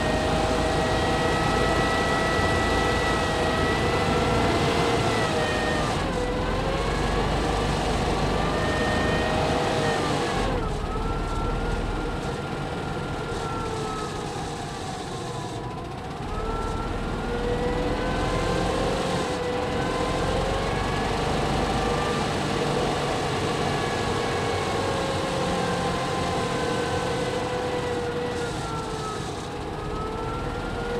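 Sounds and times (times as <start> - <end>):
Jagdpanzer 38(t) Hetzer tank engine driving, onboard, 1944: 0.0 - 30.9.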